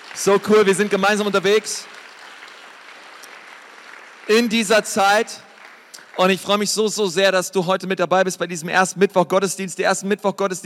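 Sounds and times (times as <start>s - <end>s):
audience applause: 0.0s - 7.1s
speech: 0.2s - 2.0s, 4.3s - 5.5s, 6.2s - 10.6s.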